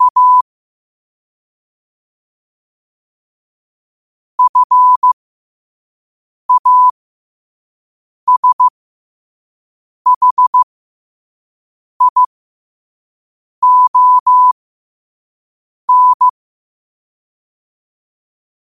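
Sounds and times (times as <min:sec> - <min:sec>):
morse code at 5 wpm: 0:00.0 - 0:00.4, 0:04.4 - 0:05.2, 0:06.5 - 0:06.9, 0:08.3 - 0:08.7, 0:10.1 - 0:10.6, 0:12.0 - 0:12.3, 0:13.6 - 0:14.6, 0:15.9 - 0:16.3.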